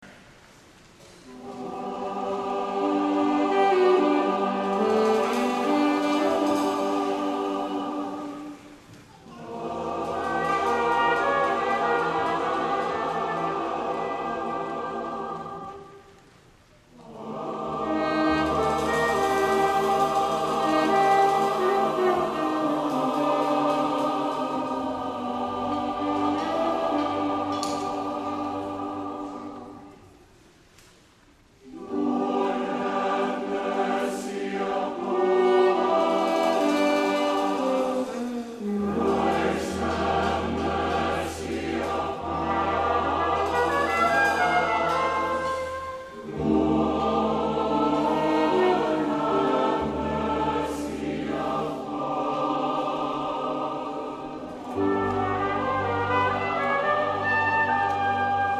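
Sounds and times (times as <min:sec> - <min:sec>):
Kyrie sung live: 0:00.0 - 0:58.5.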